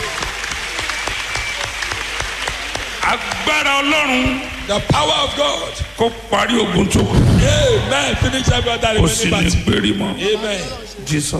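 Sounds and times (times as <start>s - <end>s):
audience clapping: 0.0s - 6.0s
speech: 3.1s - 11.3s.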